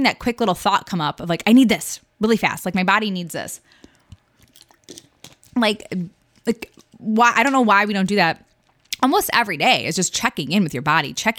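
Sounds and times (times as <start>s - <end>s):
speech: 0.0s - 3.8s, 5.6s - 11.3s
person drinking water: 3.7s - 7.0s.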